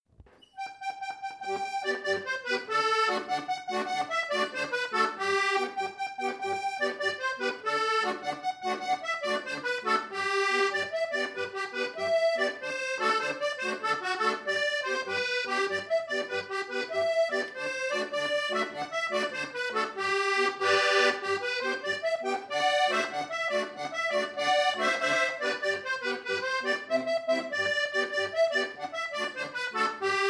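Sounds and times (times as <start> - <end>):
southern Italian tarantella: 0.2 - 30.2.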